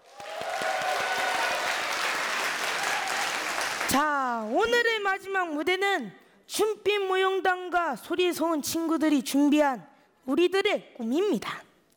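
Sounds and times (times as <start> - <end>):
audience applause: 0.0 - 4.0
speech: 3.9 - 11.6.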